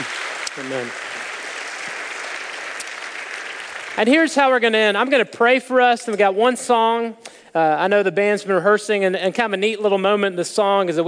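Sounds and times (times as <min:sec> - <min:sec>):
church service audience applause for performers leaving the stage: 0:00.0 - 0:04.4
speech: 0:00.6 - 0:01.1, 0:04.0 - 0:11.0.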